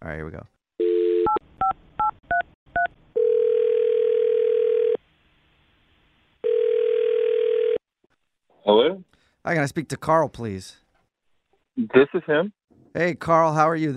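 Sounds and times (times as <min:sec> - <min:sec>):
speech: 0:00.0 - 0:00.6, 0:08.7 - 0:10.8, 0:11.8 - 0:13.9
telephone ringing tone: 0:00.8 - 0:01.4, 0:03.2 - 0:05.0, 0:06.4 - 0:07.8.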